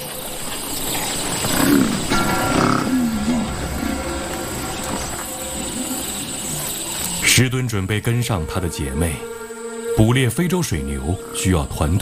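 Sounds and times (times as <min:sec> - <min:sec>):
lion roaring: 0:01.3 - 0:07.3
speech: 0:07.4 - 0:09.4, 0:10.0 - 0:12.0.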